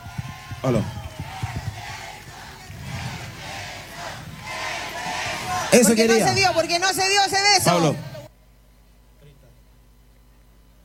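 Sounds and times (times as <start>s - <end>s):
audience applause: 0.0s - 6.9s
audience cheering: 0.0s - 8.3s
speech: 0.6s - 1.0s, 5.7s - 8.1s.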